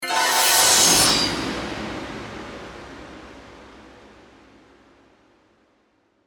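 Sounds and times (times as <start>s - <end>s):
magical haunted sci-fi spell effect: 0.0s - 2.2s.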